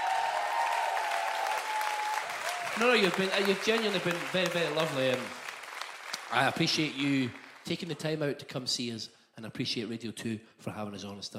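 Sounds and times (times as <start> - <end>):
audience applause: 0.0 - 7.9
speech: 2.8 - 5.4, 6.3 - 11.3.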